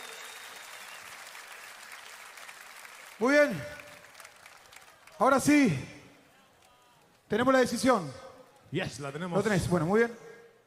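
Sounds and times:
audience applause: 0.0s - 5.5s
speech: 3.2s - 3.8s, 5.2s - 5.9s, 7.3s - 10.2s.

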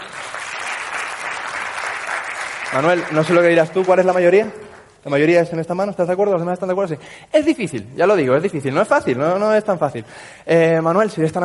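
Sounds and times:
audience applause: 0.0s - 4.4s
speech: 2.7s - 11.4s.

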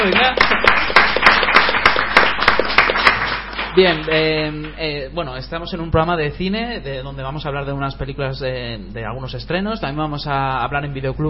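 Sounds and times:
audience applause: 0.0s - 4.1s
speech: 3.8s - 11.2s.

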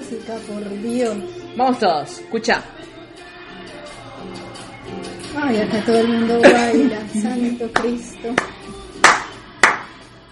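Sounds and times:
speech: 0.1s - 2.9s, 5.4s - 8.5s
laughter: 6.3s - 7.7s
hand claps: 7.7s - 10.1s.

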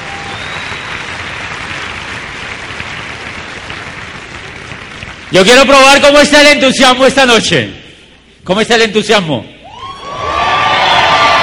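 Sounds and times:
audience applause: 0.0s - 5.7s, 10.1s - 11.4s
speech: 5.3s - 7.8s, 8.4s - 9.5s.

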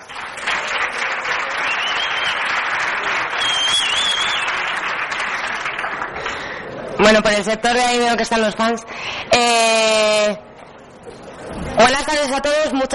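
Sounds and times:
audience applause: 0.0s - 6.8s
speech: 7.1s - 10.4s, 11.8s - 12.9s.

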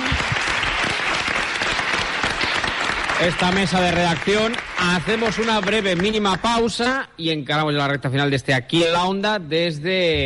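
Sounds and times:
audience applause: 0.0s - 6.6s
speech: 3.2s - 10.2s.

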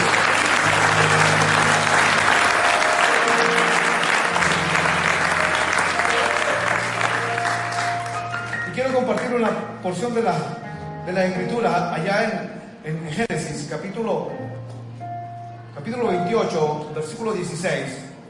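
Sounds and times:
audience applause: 0.0s - 9.4s
speech: 9.9s - 10.5s, 11.1s - 14.4s, 15.9s - 18.0s.

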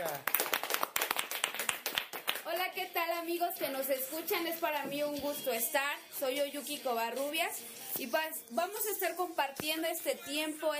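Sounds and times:
hands clapping: 0.0s - 2.8s
speech: 2.8s - 10.7s.

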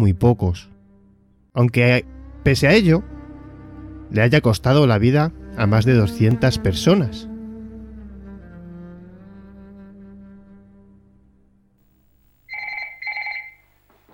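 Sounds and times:
speech: 0.0s - 0.7s, 1.6s - 3.1s, 4.1s - 7.3s
telephone ringing with a call from base camp on an Everest expedition: 12.5s - 14.1s.

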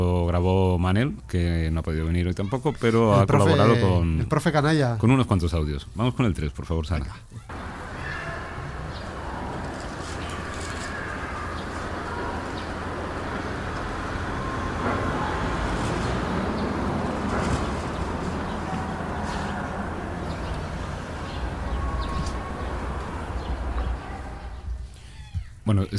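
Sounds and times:
speech: 0.0s - 7.6s
heavy street traffic near a park: 7.5s - 24.9s.

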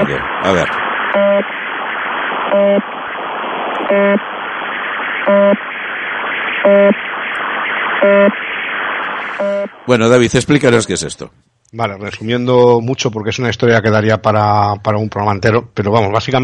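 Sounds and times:
shortwave radio channel marker buzzer tone: 0.0s - 1.7s, 2.3s - 9.9s
speech: 0.1s - 1.6s, 2.5s - 2.9s, 3.9s - 4.3s, 9.9s - 16.4s.

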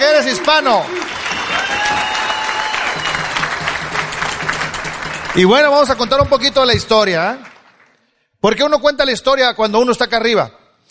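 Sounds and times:
speech: 0.0s - 1.0s, 5.4s - 7.5s, 8.4s - 10.9s
loud audience applause: 0.0s - 8.0s.

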